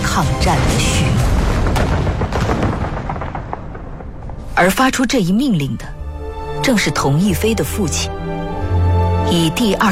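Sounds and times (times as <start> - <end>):
speech: 0.2 - 2.6, 4.6 - 6.0, 6.6 - 8.2, 9.3 - 9.9
heavy booms: 0.5 - 4.7
dense gunfire marking the outbreak of war at a bridge: 1.2 - 4.5.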